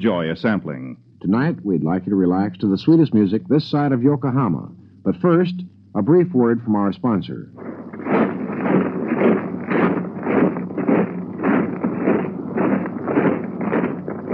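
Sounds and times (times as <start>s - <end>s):
speech: 0.0s - 7.7s
men marching in Fearless combat boots: 7.6s - 14.3s.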